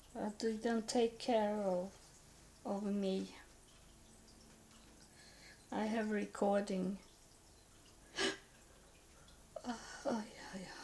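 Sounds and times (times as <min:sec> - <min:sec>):
speech: 0:00.1 - 0:02.0, 0:02.6 - 0:03.4, 0:05.7 - 0:07.1
person coughing: 0:08.2 - 0:08.4.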